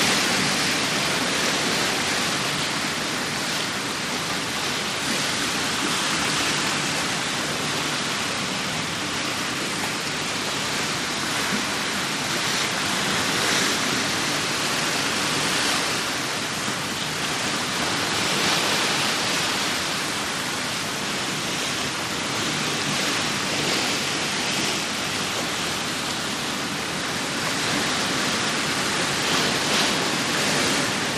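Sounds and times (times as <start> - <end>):
ocean liner bow wash: 0.0 - 31.1.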